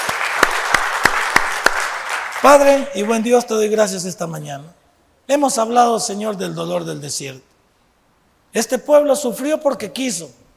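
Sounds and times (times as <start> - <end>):
audience applause: 0.0 - 2.9
speech: 2.4 - 7.5, 8.5 - 10.4.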